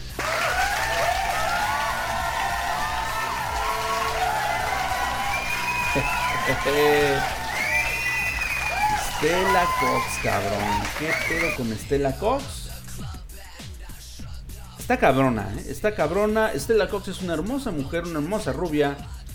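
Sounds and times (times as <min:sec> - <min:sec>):
crowd applauding: 0:00.0 - 0:11.6
whoops and cheering voices: 0:00.1 - 0:11.6
speech: 0:06.0 - 0:07.4, 0:09.2 - 0:12.6, 0:14.9 - 0:19.2.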